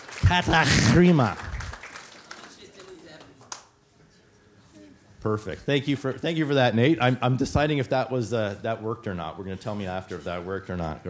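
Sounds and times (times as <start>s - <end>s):
audience applause: 0.0s - 3.4s
speech: 0.3s - 1.4s, 5.2s - 11.0s.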